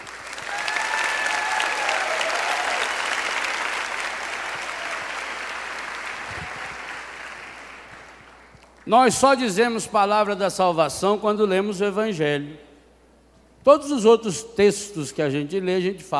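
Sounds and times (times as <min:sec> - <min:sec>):
audience applause: 0:00.0 - 0:08.8
speech: 0:08.9 - 0:12.7, 0:13.6 - 0:16.1.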